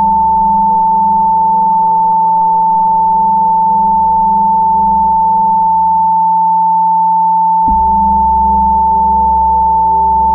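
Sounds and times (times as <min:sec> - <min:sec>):
Tibetan bowls ringing: 0:00.0 - 0:10.3
pulsing low hum: 0:07.7 - 0:10.3.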